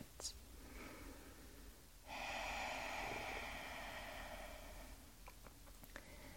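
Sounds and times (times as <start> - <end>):
ocean breathing for yoga: 0.7 - 5.2.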